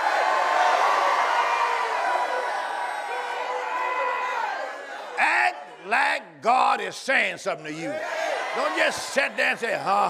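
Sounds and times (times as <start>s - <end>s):
church congregation cheering and shouting during a service: 0.0s - 10.0s
speech: 6.2s - 10.0s.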